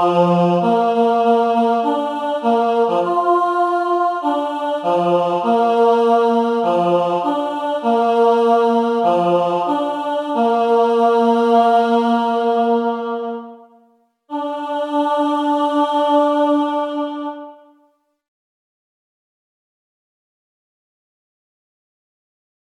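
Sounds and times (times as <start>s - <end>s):
person singing a hunters' song with words: 0.0s - 13.7s, 14.3s - 17.8s.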